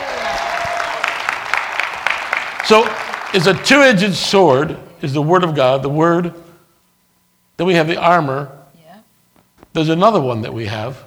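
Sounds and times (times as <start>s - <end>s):
audience clapping: 0.0s - 4.0s
speech: 2.7s - 6.4s, 7.6s - 8.6s, 9.8s - 11.0s.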